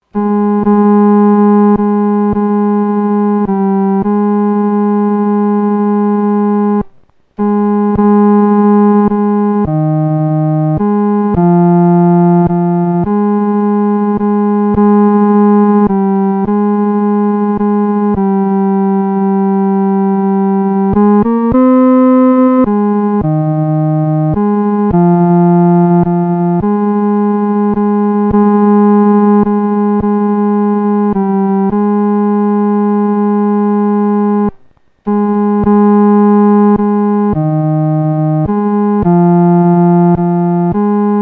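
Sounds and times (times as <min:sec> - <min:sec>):
solo music third voice: 0:00.0 - 0:41.2.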